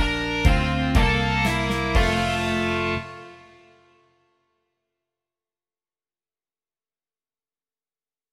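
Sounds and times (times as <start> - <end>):
rock music: 0.0 - 3.8.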